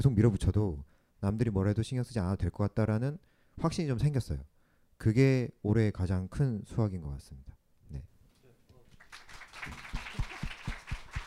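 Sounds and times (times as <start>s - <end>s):
speech: 0.0s - 8.1s
audience applause: 9.0s - 11.2s.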